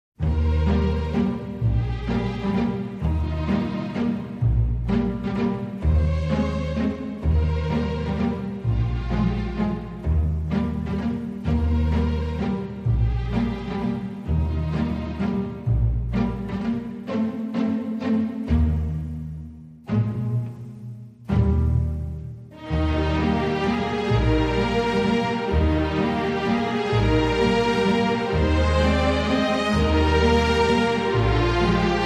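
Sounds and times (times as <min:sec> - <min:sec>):
strings: 0:00.2 - 0:32.0.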